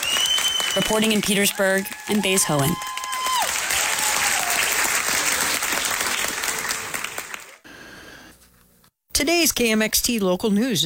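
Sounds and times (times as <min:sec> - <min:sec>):
thunderous applause from friends and family: 0:00.0 - 0:07.7
speech: 0:00.8 - 0:03.0, 0:09.2 - 0:10.8.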